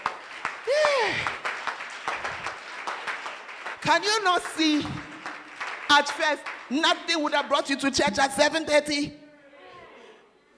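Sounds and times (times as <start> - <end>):
audience clapping: 0.0 - 7.8
speech: 3.9 - 5.0, 5.9 - 9.2.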